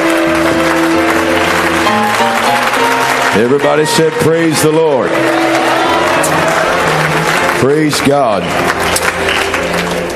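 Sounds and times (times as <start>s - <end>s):
audience clapping hands in welcome: 0.0s - 10.1s
speech: 3.4s - 5.8s, 7.6s - 9.0s.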